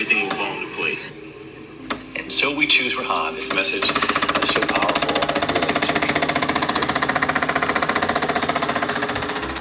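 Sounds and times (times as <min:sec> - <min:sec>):
speech: 0:00.1 - 0:01.3, 0:02.3 - 0:05.1
Tassimo coffee machine running: 0:03.6 - 0:09.5.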